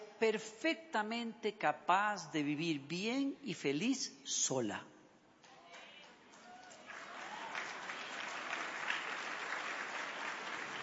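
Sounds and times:
speech: 0.2 - 4.9
timid applause from women: 5.7 - 10.8.

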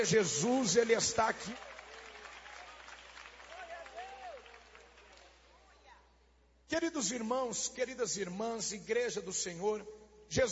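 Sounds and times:
speech: 0.0 - 1.8, 6.7 - 10.4
audience clapping hands: 0.0 - 5.7.

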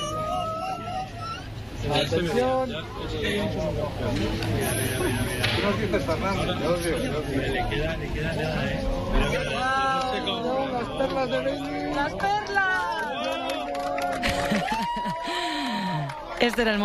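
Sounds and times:
laughter: 0.0 - 6.6, 9.2 - 16.4
speech: 1.8 - 13.0, 14.6 - 16.8
crowd applauding and cheering at eclipse totality: 9.5 - 16.8.

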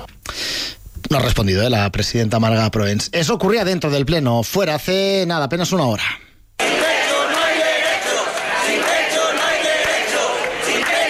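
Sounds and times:
speech: 1.1 - 6.3
protest crowd chanting outside parliament: 6.6 - 11.0.

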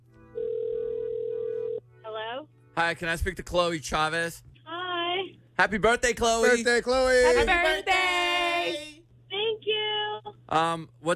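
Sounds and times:
low hum: 0.0 - 11.1
telephone tone as a call is placed: 0.4 - 1.8
speech: 2.8 - 4.5, 5.6 - 8.8, 10.5 - 11.1.

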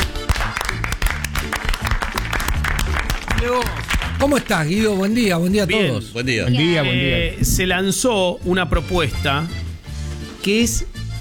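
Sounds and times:
applause: 0.0 - 5.1
speech: 3.4 - 9.6, 10.4 - 11.0.

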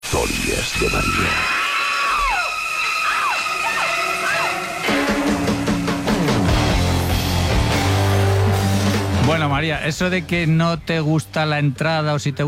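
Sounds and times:
high wavering shrieks: 0.0 - 6.5
speech: 0.2 - 1.5, 9.6 - 12.4
music with heavy bass: 4.2 - 10.6.

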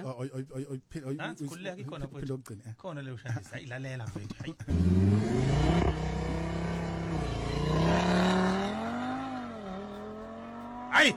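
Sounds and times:
speech: 0.1 - 6.6
Audi RS car engine revving at a motoring festival: 4.7 - 11.1.

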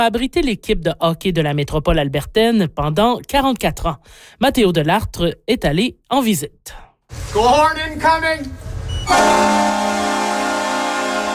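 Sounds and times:
speech: 0.0 - 9.9
hockey arena goal siren at the Saddle Dome in Calgary: 9.0 - 11.3.

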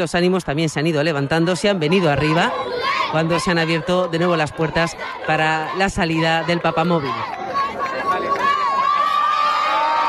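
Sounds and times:
speech: 0.0 - 7.4
crowd cheering outdoors at a papal visit: 1.4 - 10.0
people shouting: 1.4 - 10.0
crowd applauding at a papal visit: 6.1 - 10.0.

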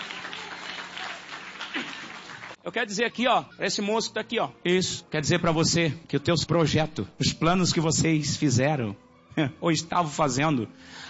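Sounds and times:
congregation clapping for Jesus during a church service: 0.0 - 2.6
speech: 2.6 - 11.0.

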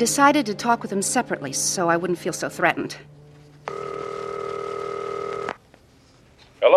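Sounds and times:
speech: 0.0 - 4.0, 6.6 - 6.7
telephone ringing: 3.7 - 5.6.

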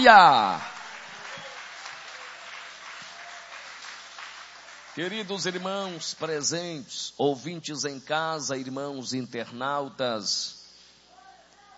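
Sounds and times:
speech: 0.0 - 0.7, 5.0 - 10.6
audience applauding: 0.0 - 6.1.

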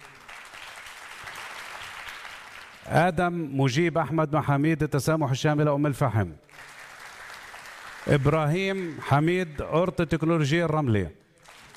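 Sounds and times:
audience applauding as ambassadors are introduced at a ceremony: 0.0 - 2.8, 6.5 - 9.7, 11.4 - 11.7
speech: 2.9 - 6.5, 8.0 - 11.2.

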